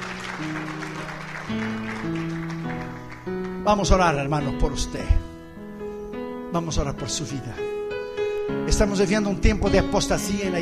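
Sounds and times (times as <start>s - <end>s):
church audience applauding: 0.0s - 4.0s
speech: 3.7s - 5.3s, 6.5s - 7.7s, 8.5s - 10.6s.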